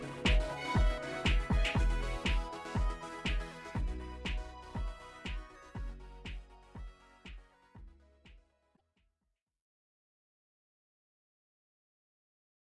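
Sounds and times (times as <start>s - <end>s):
hip hop remix: 0.0s - 7.8s.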